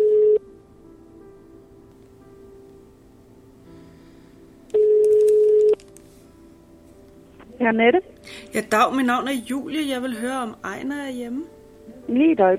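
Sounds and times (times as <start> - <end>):
telephone tone during a phone call being placed: 0.0 - 0.4, 4.7 - 5.8
speech: 7.6 - 12.5.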